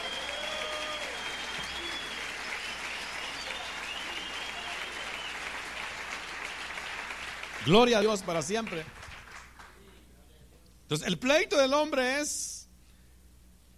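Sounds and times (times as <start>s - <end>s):
high whistles: 0.0s - 5.6s
audience applause: 0.0s - 9.9s
speech: 7.6s - 9.0s, 10.9s - 12.6s.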